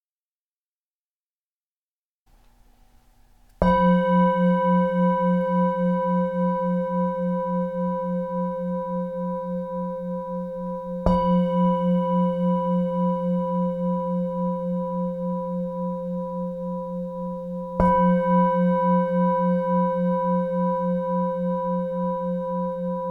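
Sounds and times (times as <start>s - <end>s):
meditation bell ringing: 3.6s - 23.0s.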